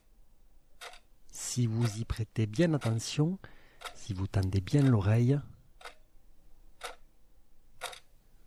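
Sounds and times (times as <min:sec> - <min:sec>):
second hand of a kitchen wall clock ticking: 0:00.8 - 0:06.0, 0:06.8 - 0:07.0, 0:07.8 - 0:08.1
speech: 0:01.6 - 0:05.5.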